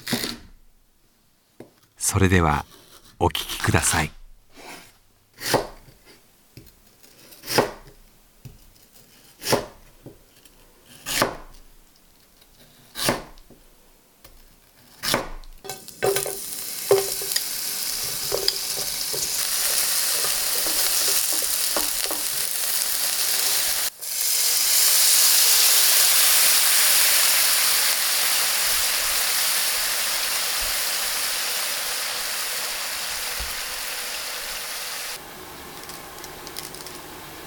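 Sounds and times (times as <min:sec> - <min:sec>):
speech: 0:02.0 - 0:04.2
knife chopping lotus root for kinpira: 0:05.4 - 0:05.9, 0:07.4 - 0:08.6, 0:09.4 - 0:09.8, 0:10.9 - 0:11.6, 0:13.0 - 0:13.4, 0:15.0 - 0:15.4
lotus root sizzling in a hot pan: 0:15.6 - 0:37.4.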